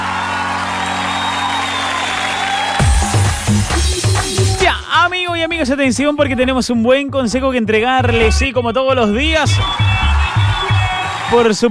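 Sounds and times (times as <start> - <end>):
applause: 0.0 - 4.6, 10.1 - 11.7
crowd noise: 0.0 - 4.9, 8.1 - 11.7
speech: 5.0 - 9.9, 11.3 - 11.7.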